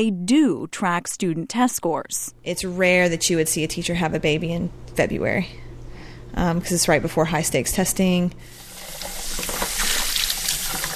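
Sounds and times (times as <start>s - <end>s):
speech: 0.0s - 5.7s, 6.4s - 9.6s
water running and splashing at a kitchen sink while baby bottles are scrubbed: 8.5s - 10.9s.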